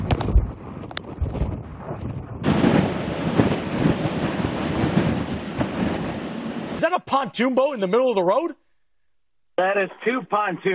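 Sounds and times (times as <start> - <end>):
hurricane wind gusts: 0.0 - 8.4
speech: 7.1 - 8.6, 9.6 - 10.7.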